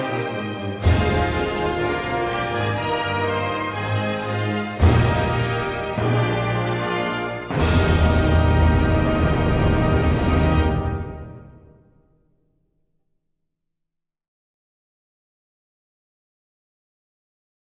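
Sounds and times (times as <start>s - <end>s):
symphony orchestra playing a national anthem: 0.0s - 11.8s.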